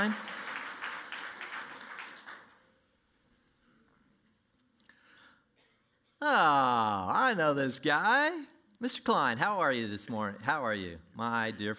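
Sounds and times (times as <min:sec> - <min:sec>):
speech: 0:00.0 - 0:00.3, 0:06.2 - 0:11.7
round of applause: 0:00.0 - 0:02.8.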